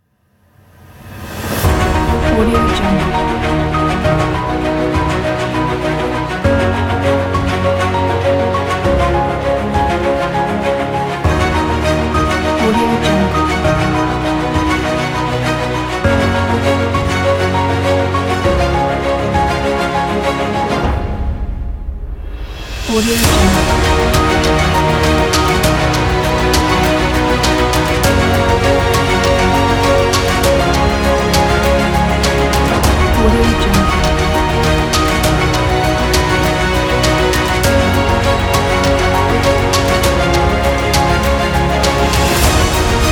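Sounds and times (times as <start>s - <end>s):
epic inspiring cinematic music: 0.5s - 43.1s.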